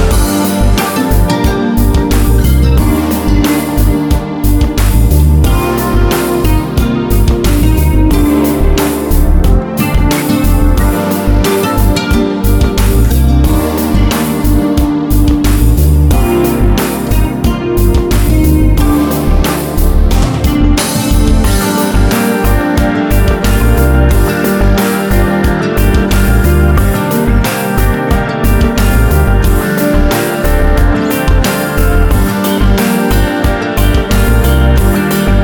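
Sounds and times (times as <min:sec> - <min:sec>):
harp: 0:00.0 - 0:35.4.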